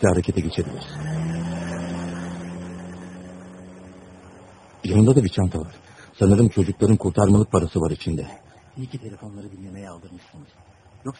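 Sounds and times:
speech: 0.0 - 1.2, 4.8 - 11.1
car driving away: 0.0 - 8.7.

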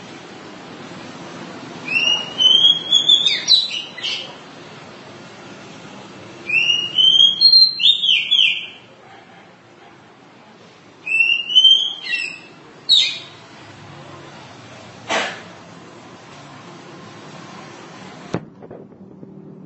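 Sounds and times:
oriental magpie-robin singing: 1.8 - 4.4, 6.5 - 8.9, 11.0 - 13.4.

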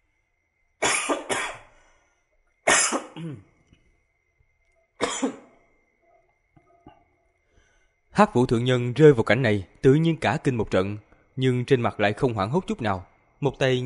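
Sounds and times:
person coughing: 0.8 - 1.7, 2.7 - 3.6, 5.0 - 5.6
speech: 3.2 - 3.5, 8.2 - 13.8.

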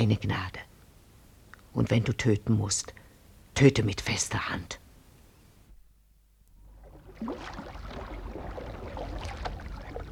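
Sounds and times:
speech: 0.0 - 0.7, 1.8 - 3.0, 3.6 - 4.8, 7.2 - 7.6
light canoe shoved out into river water: 6.8 - 10.1.

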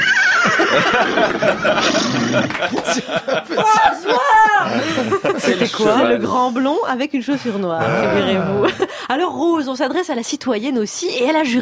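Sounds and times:
horse neighing: 0.0 - 1.0
laughter: 0.0 - 6.4, 8.0 - 9.0
speech: 0.7 - 11.6.

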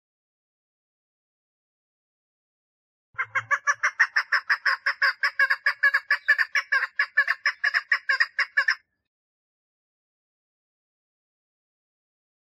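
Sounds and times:
partridge calling: 3.2 - 8.8.

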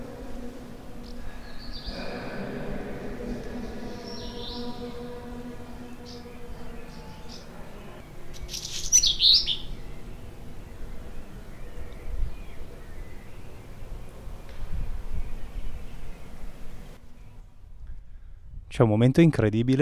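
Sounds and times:
low outdoor rumble: 0.0 - 18.7
small birds singing outside: 0.9 - 2.1, 3.2 - 17.6
speech: 18.8 - 19.8.

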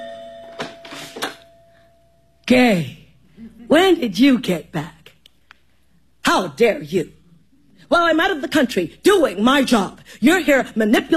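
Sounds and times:
doorbell ringing at home: 0.0 - 2.3
speech: 2.5 - 3.0, 3.7 - 5.0, 6.4 - 7.2, 7.9 - 11.1.

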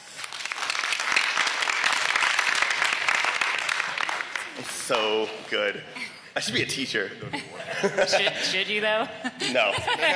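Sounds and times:
crowd clapping: 0.0 - 5.3
speech: 4.9 - 10.1
laughter: 6.0 - 10.1.

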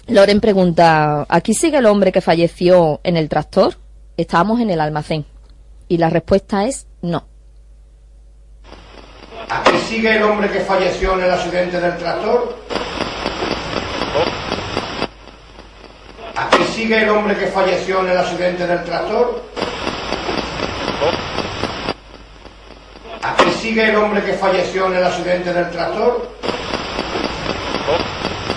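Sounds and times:
speech: 0.0 - 5.3, 5.9 - 7.3, 9.4 - 13.0, 16.4 - 19.9, 23.2 - 26.8
Spirit Box radio scanning sweep: 8.6 - 28.5.

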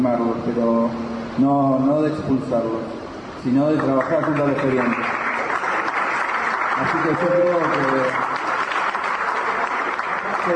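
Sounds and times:
speech: 0.0 - 5.2, 6.8 - 8.4
audience applause for a speaker at a community discussion: 3.8 - 10.5.

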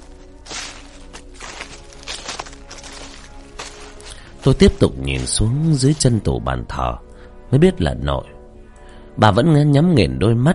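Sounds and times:
slow shuffling footsteps: 0.0 - 6.4
speech: 4.4 - 8.4, 9.2 - 10.5.

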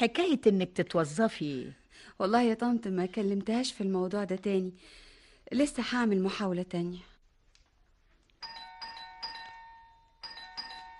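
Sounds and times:
speech: 0.0 - 7.1
electric doorbell ringing: 8.4 - 10.9.

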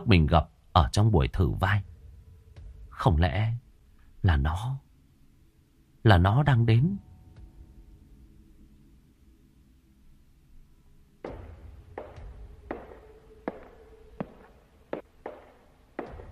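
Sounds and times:
speech: 0.0 - 1.9, 3.0 - 3.6, 4.2 - 4.8, 6.0 - 7.1
footsteps: 11.2 - 16.2.

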